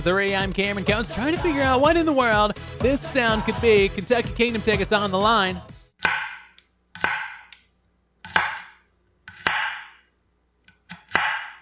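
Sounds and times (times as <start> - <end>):
speech: 0.0 - 5.7
knife chopping vegetables on a cutting board: 6.0 - 7.6, 8.2 - 10.1, 10.7 - 11.6.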